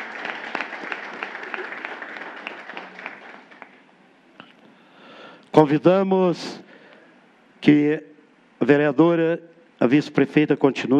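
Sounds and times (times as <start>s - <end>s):
applause: 0.0s - 3.9s
speech: 5.6s - 6.6s, 7.6s - 10.9s.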